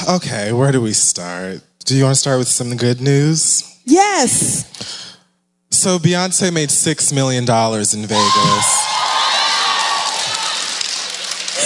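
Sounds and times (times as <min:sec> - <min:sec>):
speech: 0:00.1 - 0:05.0, 0:05.7 - 0:09.1
audience clapping and cheering: 0:08.1 - 0:11.6.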